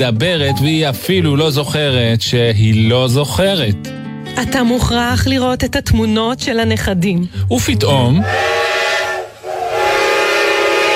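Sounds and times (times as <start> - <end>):
speech: 0.0 - 8.5
train whistle: 8.2 - 10.9.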